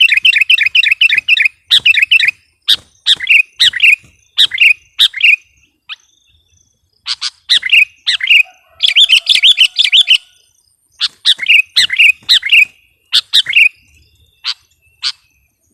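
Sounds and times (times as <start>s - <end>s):
sooty-headed bulbul chirping: 0.0s - 15.5s.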